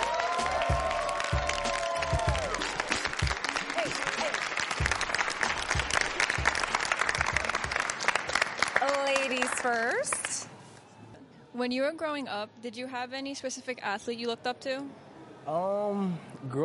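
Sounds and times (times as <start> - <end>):
audience applause: 0.0 - 10.4
speech: 11.6 - 16.6.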